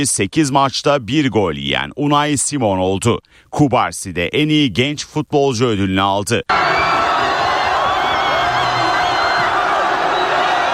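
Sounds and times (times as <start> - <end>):
speech: 0.0 - 7.0
Spanish football fans cheering at the final whistle of a World Cup win: 6.5 - 10.7
Spanish football fans whooping and shouting: 6.5 - 10.7.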